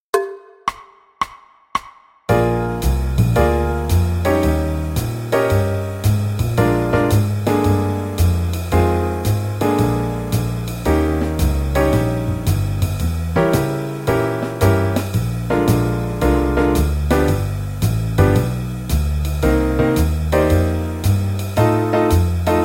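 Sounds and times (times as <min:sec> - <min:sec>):
12-bar blues jam track: 0:02.3 - 0:22.6.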